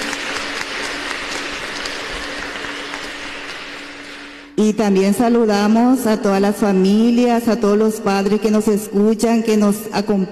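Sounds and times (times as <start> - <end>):
audience applauding: 0.0 - 4.5
speech: 4.6 - 10.3.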